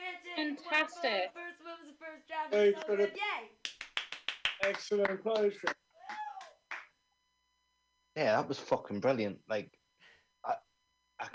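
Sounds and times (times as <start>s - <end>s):
speech: 0.5s - 3.6s, 4.6s - 5.8s, 8.2s - 9.8s, 10.4s - 10.6s
hand claps at a live comedy show: 3.6s - 7.0s
person whooping and shouting: 6.0s - 6.6s.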